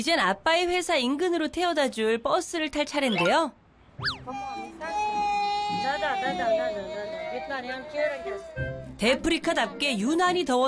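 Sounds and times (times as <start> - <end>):
speech: 0.0 - 5.2, 5.8 - 10.6
young child fussing and crying: 4.0 - 9.0.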